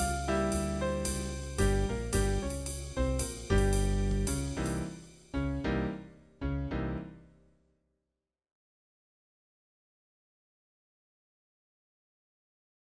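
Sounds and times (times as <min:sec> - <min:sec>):
drums: 0:00.0 - 0:05.4
jazz music: 0:00.0 - 0:07.2.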